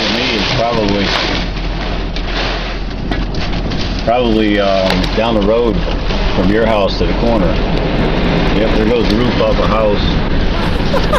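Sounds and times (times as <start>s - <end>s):
rain and wind-blown leaves and bits of trees pelting down during a violent storm: 0.0s - 11.1s
speech: 4.0s - 11.1s
laughter: 10.6s - 11.1s.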